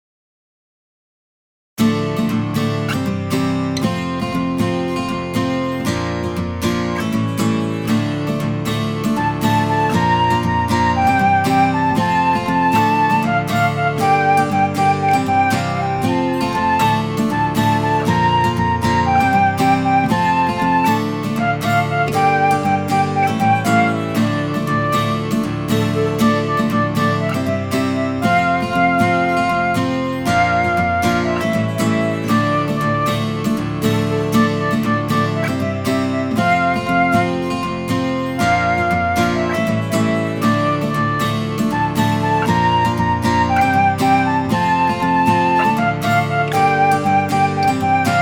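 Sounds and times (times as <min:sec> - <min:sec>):
instrumental music: 0:01.8 - 0:48.1.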